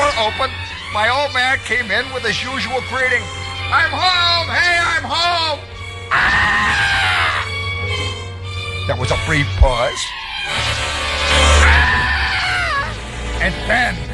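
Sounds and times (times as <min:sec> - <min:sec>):
speech: 0:00.3 - 0:07.0, 0:08.9 - 0:11.4, 0:13.4 - 0:14.1
child screaming in a tantrum: 0:06.1 - 0:07.6, 0:11.4 - 0:13.0.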